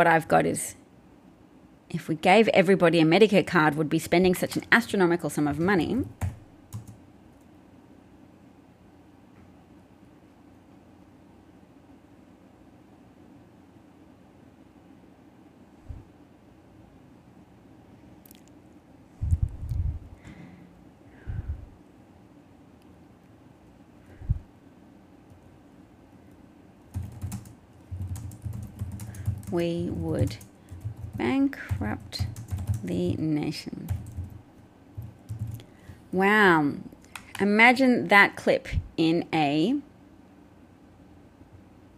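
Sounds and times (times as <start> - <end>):
speech: 0.0 - 0.8, 1.9 - 6.4, 29.6 - 30.5, 31.2 - 34.0, 36.1 - 39.9
typing on a computer keyboard: 5.5 - 7.0, 26.9 - 33.2, 33.9 - 36.0, 37.1 - 37.5.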